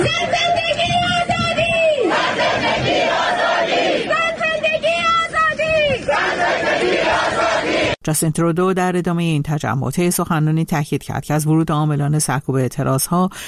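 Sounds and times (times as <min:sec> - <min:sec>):
crowd shouting and cheering: 0:00.0 - 0:08.0
crowd chanting at a protest rally: 0:01.9 - 0:08.0
speech: 0:08.0 - 0:13.4.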